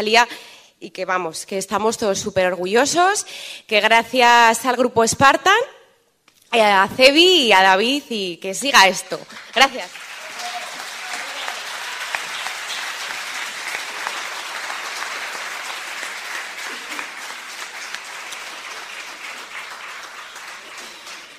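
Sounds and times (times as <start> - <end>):
speech: 0.0 - 5.8, 6.5 - 10.0
sustained standing ovation from large audience: 9.3 - 21.3.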